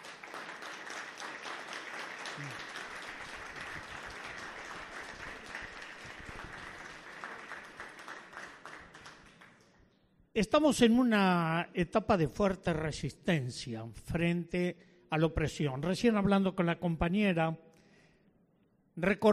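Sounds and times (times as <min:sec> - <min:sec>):
audience applause: 0:00.0 - 0:09.7
speech: 0:02.4 - 0:02.6, 0:10.4 - 0:17.6, 0:19.0 - 0:19.3.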